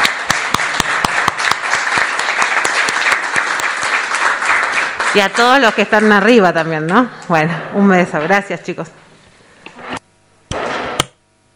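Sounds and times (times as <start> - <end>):
applause: 0.0 - 7.0
speech: 5.2 - 9.0.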